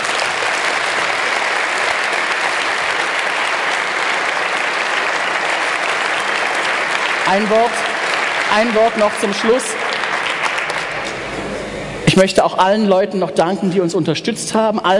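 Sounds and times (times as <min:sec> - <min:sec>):
audience applause: 0:00.0 - 0:11.6
speech: 0:07.3 - 0:07.9, 0:08.5 - 0:09.8, 0:12.2 - 0:14.9.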